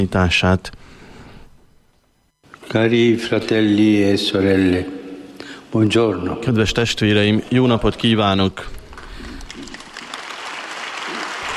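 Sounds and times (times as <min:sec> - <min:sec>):
speech: 0:00.0 - 0:00.9, 0:02.7 - 0:05.0, 0:05.7 - 0:08.8
audience applause: 0:08.9 - 0:11.5.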